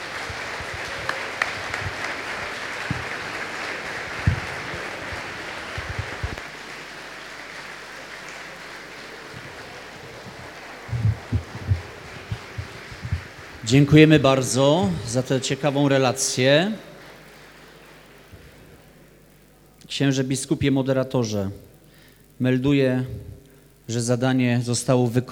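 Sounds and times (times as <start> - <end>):
audience applause: 0.0 - 19.8, 21.9 - 22.2
speech: 13.7 - 16.9, 20.0 - 21.7, 22.4 - 25.3.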